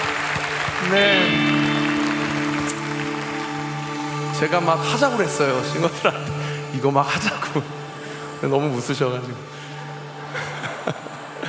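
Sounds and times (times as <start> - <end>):
audience applause: 0.0 - 6.4
speech: 0.8 - 1.6, 4.4 - 7.8, 8.4 - 9.6
laughter: 10.3 - 11.4.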